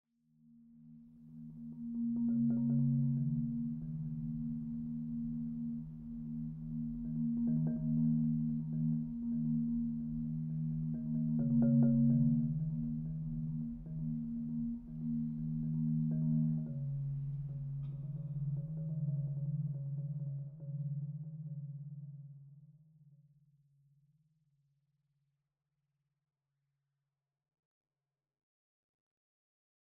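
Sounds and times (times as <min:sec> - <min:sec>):
marimba: 0:01.2 - 0:21.5.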